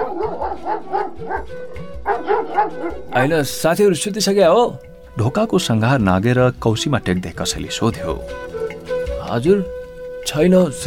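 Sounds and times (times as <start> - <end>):
dog barking with a whining tone on a moonless night: 0.0 - 3.0
speech: 0.3 - 8.6, 9.3 - 10.8.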